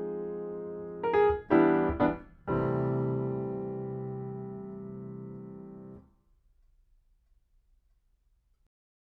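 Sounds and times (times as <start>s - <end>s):
piano: 0.0s - 6.3s.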